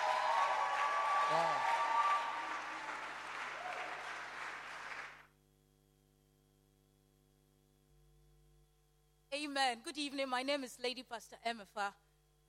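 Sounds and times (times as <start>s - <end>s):
audience clapping to welcome a lady pastor at a church service: 0.0s - 5.3s
speech: 9.6s - 12.0s.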